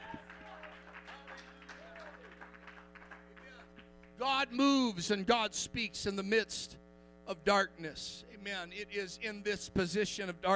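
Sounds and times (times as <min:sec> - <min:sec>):
audience hand clapping: 0:00.0 - 0:04.2
speech: 0:04.2 - 0:10.5.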